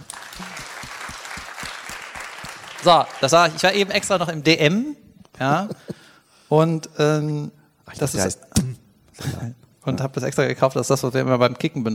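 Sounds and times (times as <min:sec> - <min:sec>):
applause from a live show audience: 0:00.0 - 0:04.2
speech: 0:02.8 - 0:05.8, 0:06.5 - 0:11.9.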